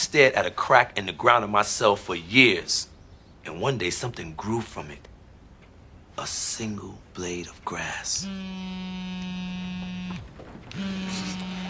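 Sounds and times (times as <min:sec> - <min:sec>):
speech: 0:00.1 - 0:05.1, 0:06.2 - 0:11.6
phone vibrating on vibrate mode: 0:08.2 - 0:11.6.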